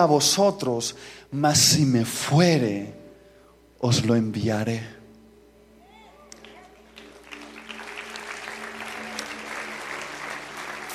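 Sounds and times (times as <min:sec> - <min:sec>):
speech: 0:00.0 - 0:03.0, 0:03.8 - 0:05.0
audience applause: 0:06.4 - 0:10.9.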